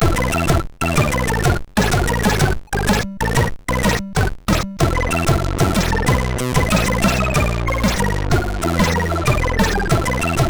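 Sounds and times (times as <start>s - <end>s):
SID MOS6581R3 chip sound: 0.0s - 10.4s.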